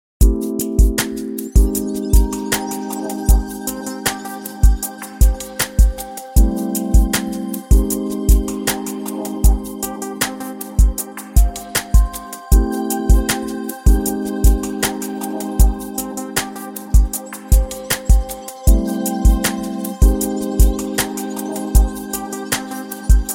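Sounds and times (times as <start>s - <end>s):
jazz music: 0.2s - 23.3s.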